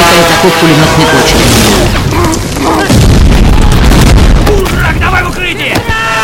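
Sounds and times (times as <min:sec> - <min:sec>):
speech: 0:00.2 - 0:02.4
bomb explosion: 0:00.9 - 0:06.1.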